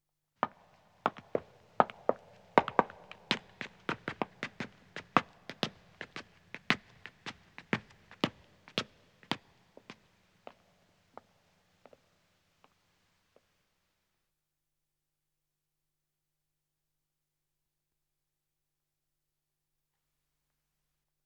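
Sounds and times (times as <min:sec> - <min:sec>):
echoing footsteps ascending stone stairs: 0:00.4 - 0:12.8.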